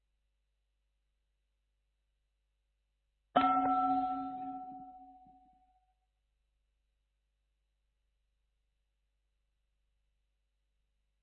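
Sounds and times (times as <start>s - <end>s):
meditation bell ringing: 3.4s - 5.5s.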